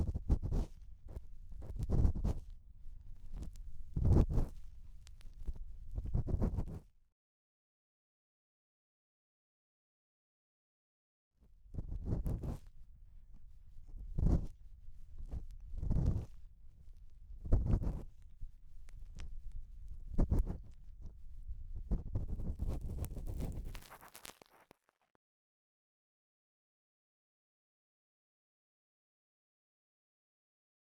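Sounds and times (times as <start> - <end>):
bamboo ear pick scratching deep in the left ear: 0.0 - 6.7, 11.8 - 24.6.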